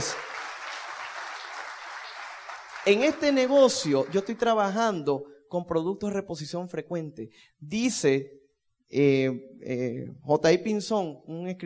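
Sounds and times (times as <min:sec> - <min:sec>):
audience applause: 0:00.0 - 0:04.8
speech: 0:02.9 - 0:11.6.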